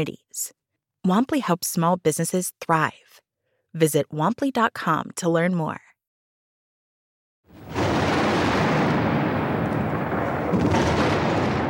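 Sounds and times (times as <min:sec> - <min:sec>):
speech: 0:00.0 - 0:03.0, 0:03.7 - 0:05.8
artillery fire: 0:07.5 - 0:11.6
military bombardment explosions: 0:07.5 - 0:11.6.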